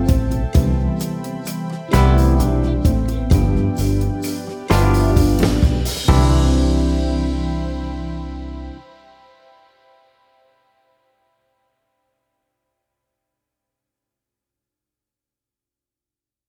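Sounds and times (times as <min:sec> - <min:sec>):
chord progression in C major with instrument and melody: 0:00.0 - 0:10.8.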